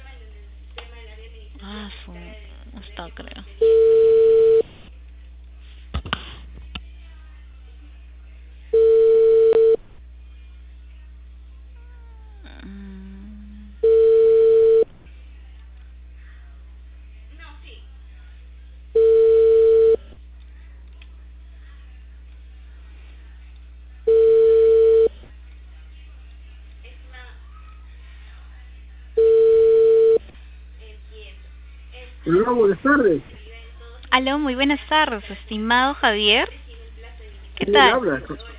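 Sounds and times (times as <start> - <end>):
faint hum: 0.0 - 38.5
speech: 1.6 - 4.1, 32.3 - 33.4, 34.2 - 36.6, 37.6 - 38.5
ringback tone of an outgoing call to a customer in Peru: 3.6 - 4.7, 8.8 - 9.8, 13.8 - 14.9, 19.0 - 20.0, 24.1 - 25.1, 29.2 - 30.2.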